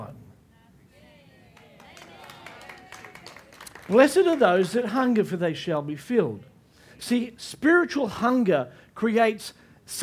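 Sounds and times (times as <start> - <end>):
audience applause: 1.6 - 4.9
speech: 3.9 - 10.0.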